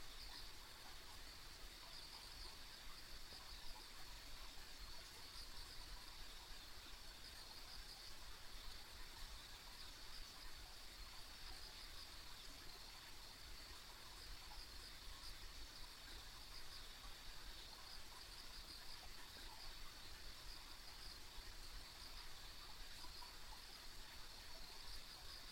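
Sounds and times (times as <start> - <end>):
insects trilling: 0.0 - 25.4.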